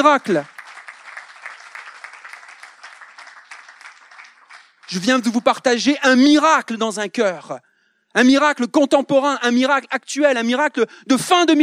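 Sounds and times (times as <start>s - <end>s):
speech: 0.0s - 0.5s, 4.9s - 11.6s
crowd applause: 0.0s - 5.3s.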